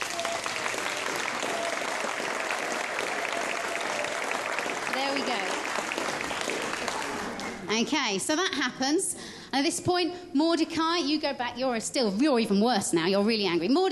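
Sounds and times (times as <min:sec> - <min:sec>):
children clapping for a parade: 0:00.0 - 0:07.7
speech: 0:07.8 - 0:13.9.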